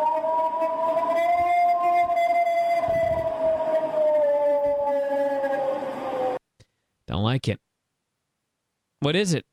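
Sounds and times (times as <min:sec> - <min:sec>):
whale howling: 0:00.0 - 0:06.4
speech: 0:07.3 - 0:07.6, 0:09.0 - 0:09.5.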